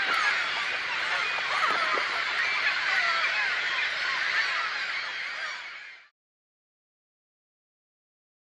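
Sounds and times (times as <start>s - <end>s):
dense continuous chorus of many birds calling: 0.0s - 6.1s.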